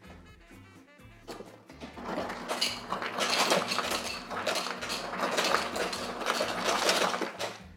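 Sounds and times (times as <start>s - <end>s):
ice cubes clattering into a cocktail shaker: 2.0s - 7.6s.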